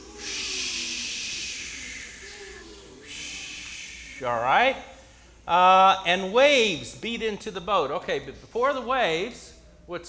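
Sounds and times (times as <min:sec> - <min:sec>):
people imitating wind noises: 0:00.0 - 0:05.1
faint voiced hum: 0:00.0 - 0:06.8
speech: 0:04.2 - 0:04.9, 0:05.5 - 0:10.0.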